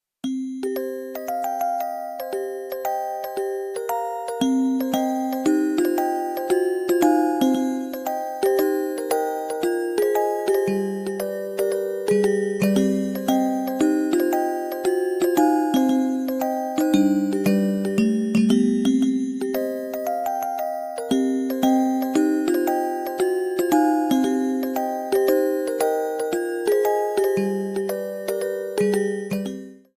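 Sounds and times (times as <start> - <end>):
ringtone: 0.2 - 29.9.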